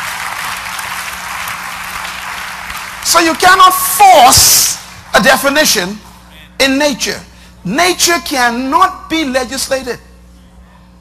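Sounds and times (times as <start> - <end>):
audience clapping: 0.0 - 5.5
speech: 3.1 - 10.0.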